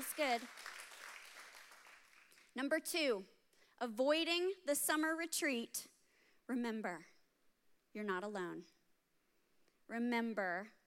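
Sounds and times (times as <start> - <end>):
audience clapping: 0.0 - 2.5
speech: 0.2 - 0.7, 2.6 - 5.9, 6.5 - 7.1, 7.9 - 8.8, 9.9 - 10.8.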